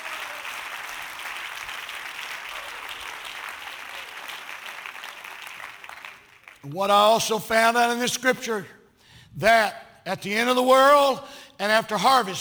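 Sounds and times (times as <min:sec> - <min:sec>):
crowd clapping: 0:00.0 - 0:06.7
speech: 0:06.6 - 0:12.3.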